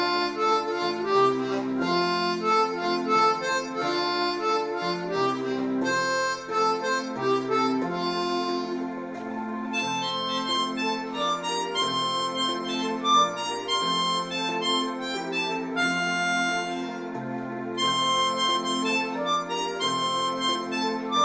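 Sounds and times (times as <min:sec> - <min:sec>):
harmonica melody in F: 0:00.0 - 0:21.2.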